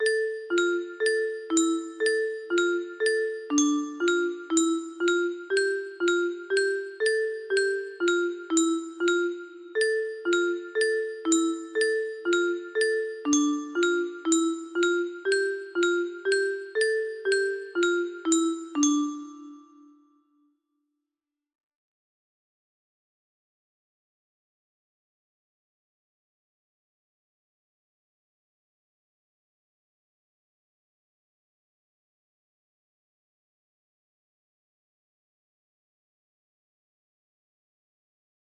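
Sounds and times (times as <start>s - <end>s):
music box melody: 0.0s - 20.1s.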